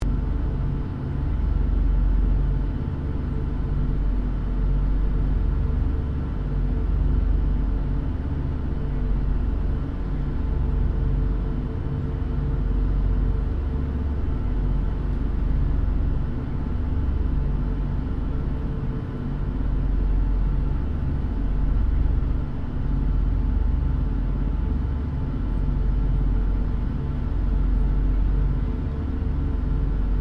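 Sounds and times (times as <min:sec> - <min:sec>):
Lockheed L-1049 Super Constellation flying interior: 0:00.0 - 0:30.1.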